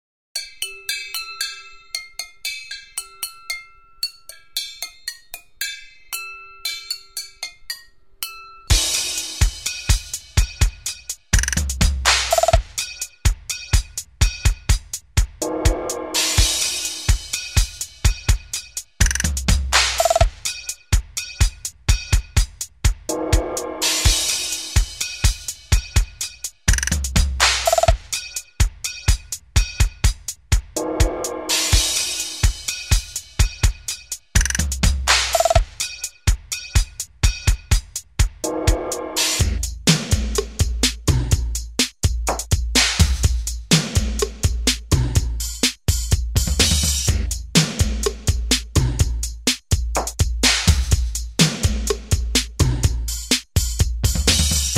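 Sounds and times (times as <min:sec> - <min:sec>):
groove music: 0:08.7 - 0:54.7.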